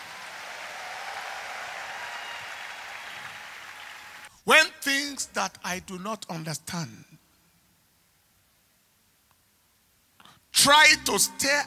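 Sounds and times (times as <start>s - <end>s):
audience clapping: 0.0s - 4.3s
speech: 4.4s - 7.2s, 10.6s - 11.6s.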